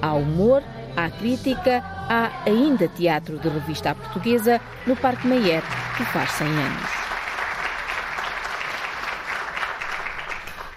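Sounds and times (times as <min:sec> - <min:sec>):
speech: 0:00.0 - 0:07.0
audience applause: 0:04.7 - 0:10.7.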